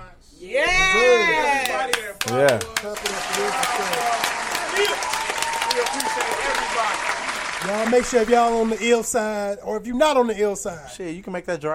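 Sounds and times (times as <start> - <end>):
clapping: 1.6 - 9.0
speech: 2.2 - 4.0, 5.9 - 11.7.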